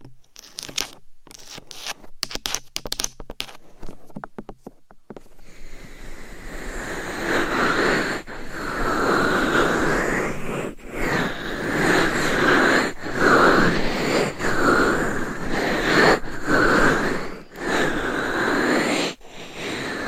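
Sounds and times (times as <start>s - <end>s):
rough rubbing on a binaural mic: 0.4s - 4.2s, 6.8s - 19.9s
sharp taps and clicks on a binaural mic: 2.2s - 5.3s.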